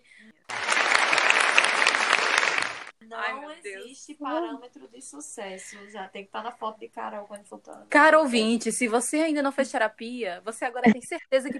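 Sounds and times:
group applauding: 0.5 - 3.0
speech: 3.1 - 11.5.

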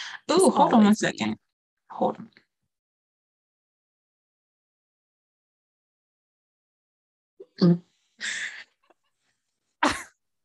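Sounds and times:
speech: 0.1 - 2.4, 7.6 - 8.5
person coughing hard: 9.8 - 10.1.

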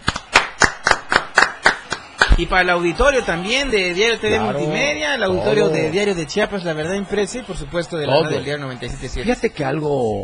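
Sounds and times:
audience applause: 0.0 - 8.1
speech: 2.4 - 10.2.

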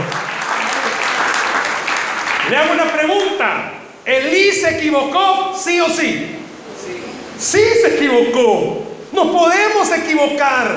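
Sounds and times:
audience applause: 0.0 - 3.0
speech: 2.5 - 6.4, 7.4 - 10.7.

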